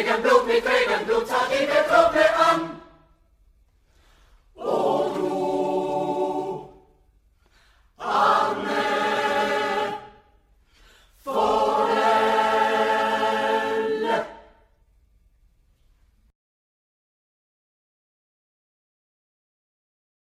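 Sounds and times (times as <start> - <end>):
choir singing: 0.0 - 3.1, 4.5 - 7.0, 8.0 - 10.4, 11.2 - 14.7.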